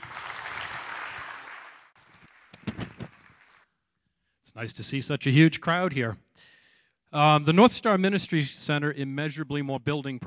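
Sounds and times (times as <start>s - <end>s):
audience applause: 0.0s - 3.6s
speech: 4.5s - 6.3s, 7.1s - 10.2s.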